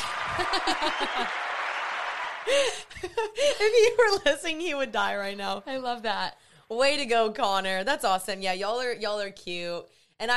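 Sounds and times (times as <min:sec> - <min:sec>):
bright whoops and cheering voices: 0:00.0 - 0:02.9
crowd applause: 0:00.0 - 0:03.0
laughter: 0:00.0 - 0:04.2
speech: 0:00.4 - 0:01.4, 0:02.4 - 0:10.3.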